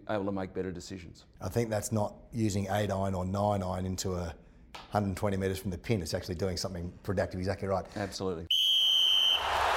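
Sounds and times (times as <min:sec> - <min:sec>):
speech: 0:00.1 - 0:08.5
half-time whistle: 0:08.5 - 0:09.6.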